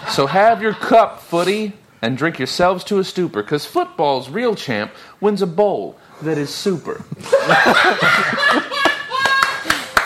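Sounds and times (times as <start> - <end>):
speech: 0.2 - 8.7
laughter: 7.0 - 9.9
scattered claps after a poem: 8.8 - 10.0.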